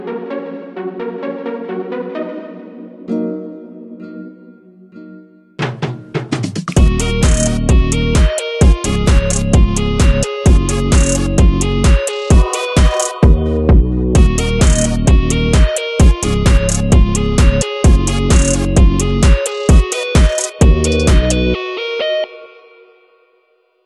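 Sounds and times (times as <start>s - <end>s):
karaoke anthem backing track: 6.8s - 22.4s.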